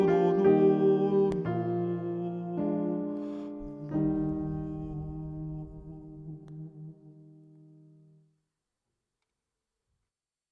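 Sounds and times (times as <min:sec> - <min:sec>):
soprano singing: 0:00.0 - 0:07.8.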